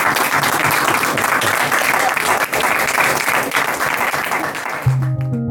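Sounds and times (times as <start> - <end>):
crowd applauding loudly: 0.0 - 5.4.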